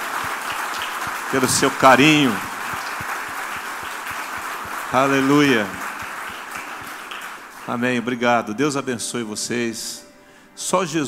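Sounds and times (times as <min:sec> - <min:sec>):
faint regular beat: 0:00.0 - 0:07.0
crowd applauding: 0:00.0 - 0:08.2
speech: 0:01.3 - 0:02.5, 0:04.9 - 0:05.8, 0:07.7 - 0:10.0, 0:10.6 - 0:11.0.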